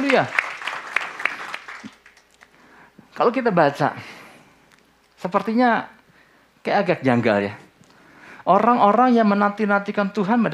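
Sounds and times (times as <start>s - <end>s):
crowd audience applauding: 0.0s - 2.6s
speech: 0.1s - 0.4s, 3.2s - 4.1s, 5.2s - 6.0s, 6.6s - 7.6s, 8.4s - 10.5s.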